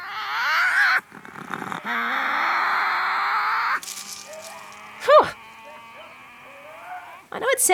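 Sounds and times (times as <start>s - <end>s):
Tasmanian devils squabbling over food: 0.0s - 7.4s.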